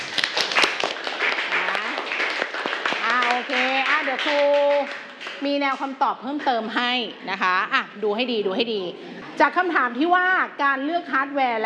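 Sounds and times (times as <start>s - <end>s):
group clapping: 0.0s - 6.8s
speech: 4.2s - 11.6s.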